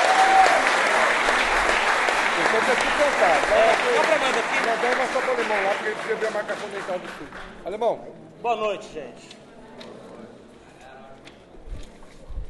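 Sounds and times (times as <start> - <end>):
audience applause: 0.0 - 7.7
speech: 2.7 - 9.9.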